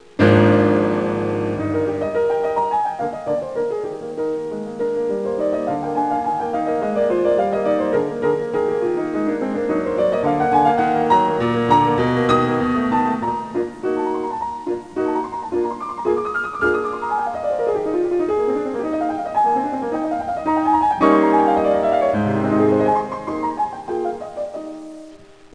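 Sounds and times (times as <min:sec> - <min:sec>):
sonata: 0:00.0 - 0:25.5.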